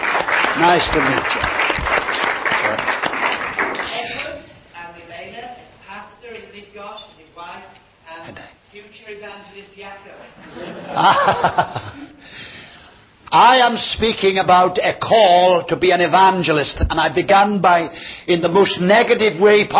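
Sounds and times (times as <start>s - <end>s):
audience applause: 0.0s - 4.2s
speech: 0.6s - 1.9s, 8.8s - 11.9s, 13.4s - 19.7s
laughter: 10.4s - 12.3s.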